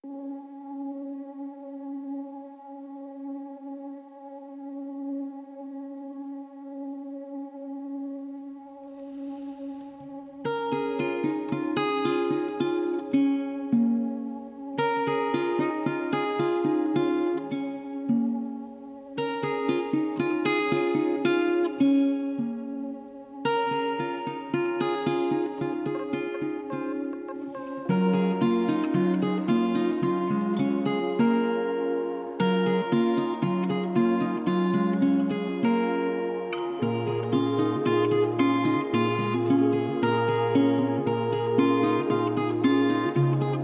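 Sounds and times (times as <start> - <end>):
acoustic music: 8.8 - 43.6.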